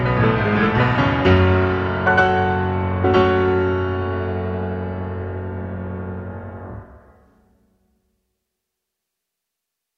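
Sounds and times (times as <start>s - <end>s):
traditional Christmas carol arranged for piano: 0.0s - 7.1s.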